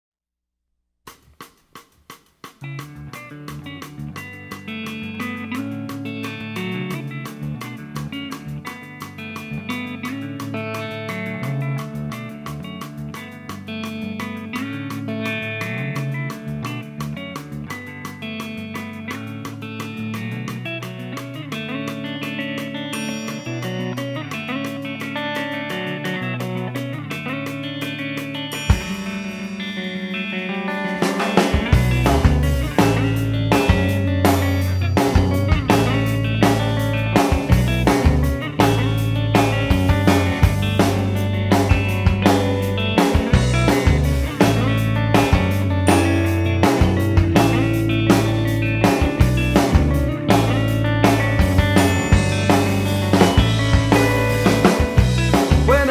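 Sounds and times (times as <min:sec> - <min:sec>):
math rock music: 0:01.1 - 0:55.8
person singing: 0:55.5 - 0:55.8.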